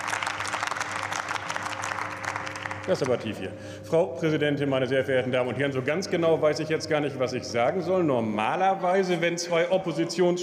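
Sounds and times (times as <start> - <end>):
parliament applause: 0.0 - 3.4
speech: 2.9 - 10.4.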